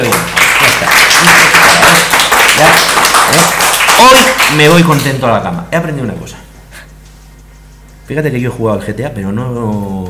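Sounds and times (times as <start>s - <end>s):
applause: 0.0s - 5.2s
speech: 4.5s - 6.5s, 8.1s - 10.0s.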